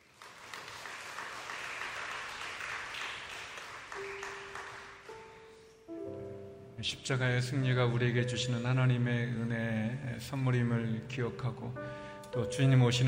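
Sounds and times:
audience applause: 0:00.0 - 0:05.2
speech: 0:06.8 - 0:13.0.

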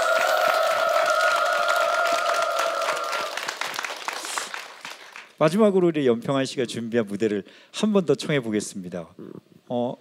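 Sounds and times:
audience applauding and cheering for a musician at a live show: 0:00.0 - 0:05.4
speech: 0:05.4 - 0:10.0.

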